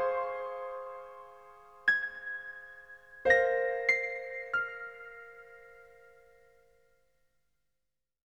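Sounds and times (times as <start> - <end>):
piano sketch: 0.0 - 6.7.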